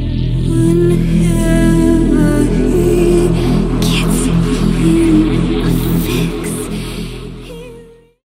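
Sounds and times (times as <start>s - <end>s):
distorted sound: 0.2s - 8.0s.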